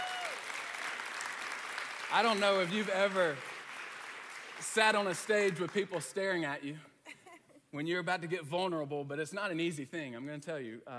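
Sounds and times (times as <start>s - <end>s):
audience applause: 0.0s - 6.1s
speech: 2.1s - 3.5s, 4.6s - 6.9s, 7.7s - 10.9s.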